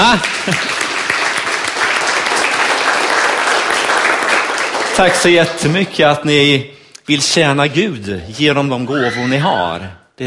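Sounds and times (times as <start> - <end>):
audience applause: 0.0 - 5.7
speech: 0.1 - 0.9, 5.0 - 10.2.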